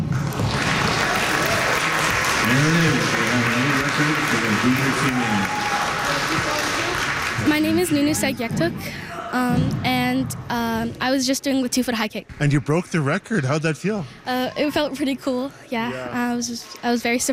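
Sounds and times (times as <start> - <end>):
packed crowd cheering at a sports event: 0.1 - 8.3
speech: 7.9 - 17.3.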